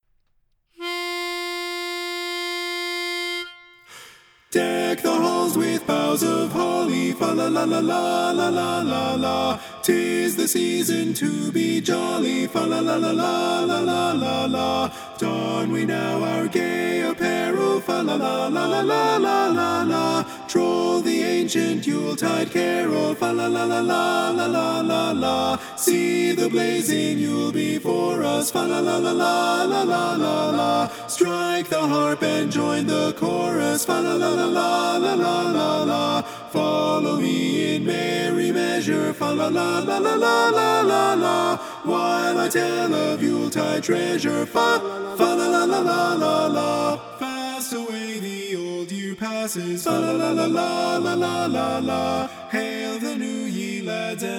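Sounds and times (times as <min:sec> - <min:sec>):
tenor singing in mono: 0:00.8 - 0:54.3.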